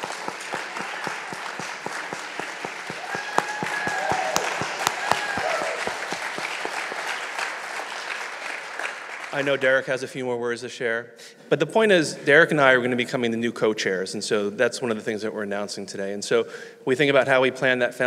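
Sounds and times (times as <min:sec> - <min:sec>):
round of applause: 0:00.0 - 0:09.6
speech: 0:09.4 - 0:18.0.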